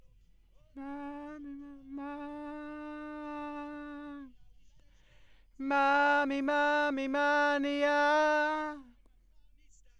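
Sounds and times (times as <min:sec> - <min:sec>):
backing vocals: 0:00.8 - 0:04.3, 0:05.6 - 0:08.9.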